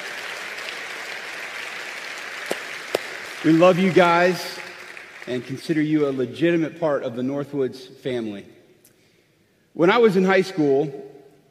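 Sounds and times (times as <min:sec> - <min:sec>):
audience applause welcoming the online campus: 0:00.0 - 0:06.2
speech: 0:03.4 - 0:04.6, 0:05.3 - 0:08.6, 0:09.8 - 0:11.1.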